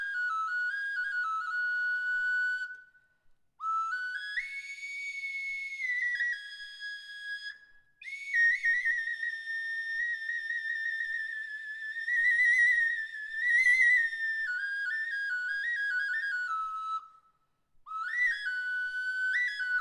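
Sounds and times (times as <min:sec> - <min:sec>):
tubular flute with plant-shaped bell: 0:00.0 - 0:19.7.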